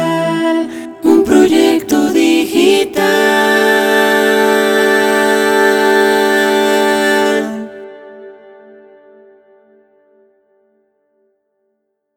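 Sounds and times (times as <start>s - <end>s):
voices singing a jingle: 0.0s - 7.8s.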